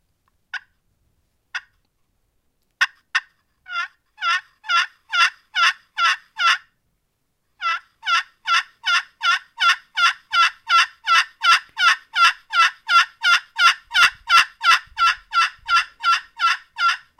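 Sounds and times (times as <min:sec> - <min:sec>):
hen turkey long yelp calls: 0:02.8 - 0:06.7, 0:07.6 - 0:17.1.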